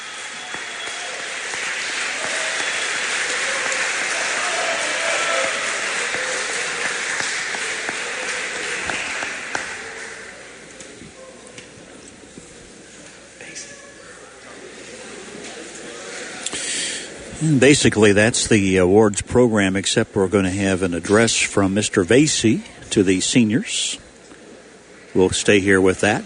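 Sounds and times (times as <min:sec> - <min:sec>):
audience applauding award winners: 0:00.0 - 0:10.5
speech: 0:17.5 - 0:24.0, 0:25.2 - 0:26.2.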